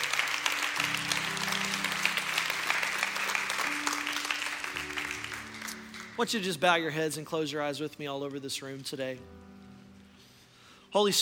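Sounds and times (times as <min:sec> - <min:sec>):
audience clapping hands: 0:00.0 - 0:06.8
speech: 0:06.2 - 0:09.4, 0:10.9 - 0:11.2.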